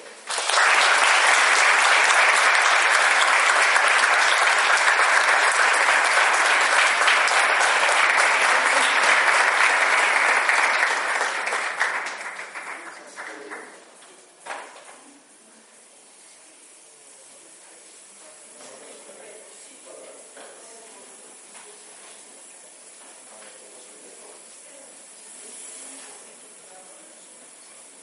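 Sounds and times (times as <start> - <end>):
audience applause: 0.0 - 13.9.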